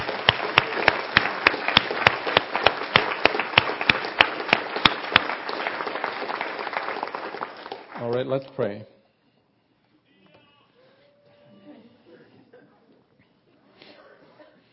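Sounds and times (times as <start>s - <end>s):
audience applause: 0.0s - 8.2s
speech: 8.0s - 9.0s.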